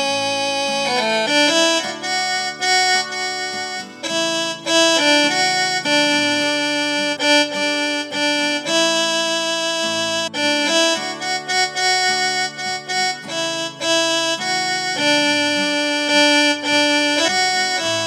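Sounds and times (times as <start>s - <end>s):
instrumental viola playing: 0.0s - 18.0s.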